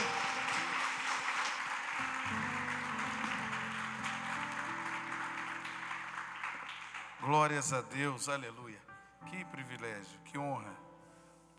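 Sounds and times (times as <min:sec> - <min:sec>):
audience applauding: 0:00.0 - 0:07.7
speech: 0:07.3 - 0:10.9.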